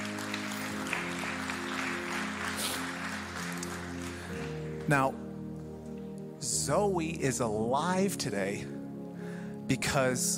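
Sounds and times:
audience applause: 0:00.0 - 0:04.8
speech: 0:04.9 - 0:05.2, 0:06.6 - 0:08.8, 0:09.7 - 0:10.3.

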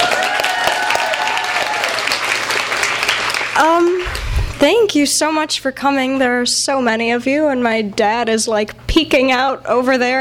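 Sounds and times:
cheering: 0:00.0 - 0:03.6
crowd applauding: 0:00.0 - 0:04.6
speech: 0:04.6 - 0:10.1.

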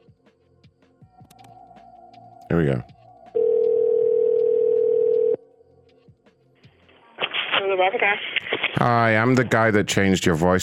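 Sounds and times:
quiet clicks: 0:01.2 - 0:01.6
speech: 0:02.5 - 0:02.9, 0:07.8 - 0:10.6
telephone dial tone as a call to Comcast starts: 0:03.4 - 0:05.4.

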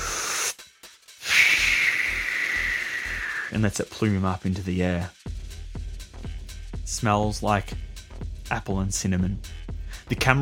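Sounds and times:
inhale drawn from an e-cigarette: 0:00.0 - 0:03.6
speech: 0:03.5 - 0:05.2, 0:06.9 - 0:07.8, 0:08.5 - 0:10.4
soft low pulsing beat: 0:03.5 - 0:10.4.

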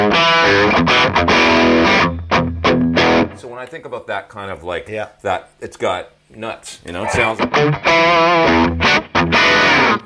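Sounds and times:
distorted electric guitar through one channel of a custom-built tube amp: 0:00.0 - 0:03.4, 0:07.0 - 0:10.0
speech: 0:03.6 - 0:10.0.

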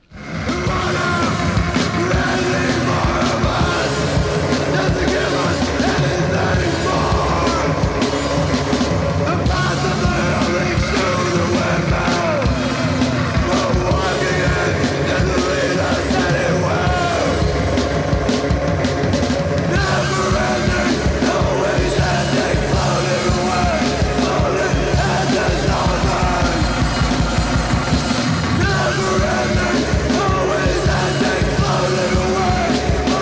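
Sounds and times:
drums of a guitarless metal band: 0:00.0 - 0:33.2
electronics of a guitarless metal band: 0:00.0 - 0:33.2.

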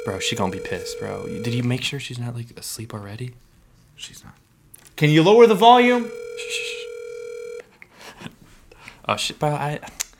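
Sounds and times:
outgoing phone call ringback tone: 0:00.0 - 0:01.7, 0:06.0 - 0:07.6
speech: 0:00.0 - 0:04.4, 0:05.0 - 0:06.7, 0:09.1 - 0:10.0.

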